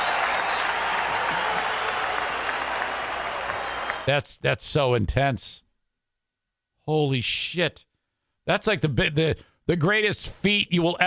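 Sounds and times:
stadium crowd cheering and applauding: 0.0s - 4.1s
speech: 4.0s - 5.6s, 6.9s - 7.9s, 8.5s - 11.0s.

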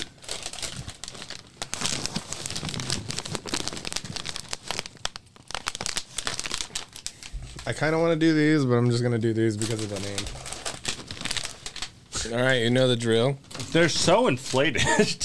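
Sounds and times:
crinkling snack bags being held up: 0.0s - 7.9s, 9.4s - 12.1s, 13.4s - 14.7s
speech: 7.7s - 10.4s, 12.2s - 15.2s.

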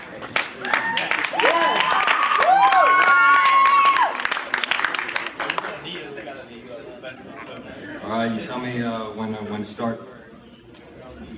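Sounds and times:
audience applause: 0.0s - 5.9s
speech: 8.2s - 10.1s.

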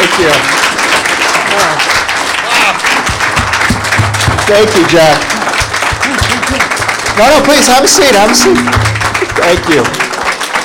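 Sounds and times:
audience applause: 0.0s - 10.6s
low thumps: 3.1s - 10.2s
speech: 4.5s - 5.4s, 6.5s - 10.0s.

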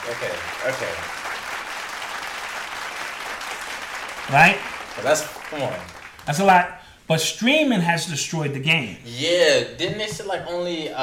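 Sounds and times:
clapping: 0.0s - 6.6s
speech: 0.1s - 1.4s, 4.3s - 11.0s.

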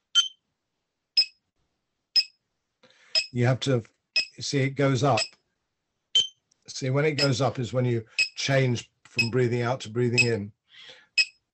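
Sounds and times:
clicker ticker breathing pacer clicking: 2.8s - 3.3s, 8.1s - 8.4s
speech: 3.3s - 5.4s, 6.7s - 11.0s.

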